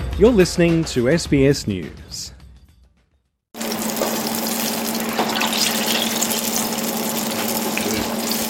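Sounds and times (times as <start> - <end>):
speech: 0.2 - 2.3
eggplant strips sizzling in hot frying oil: 3.5 - 8.4.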